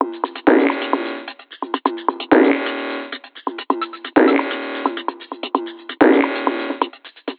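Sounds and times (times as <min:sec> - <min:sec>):
beat loop: 0:00.0 - 0:07.3.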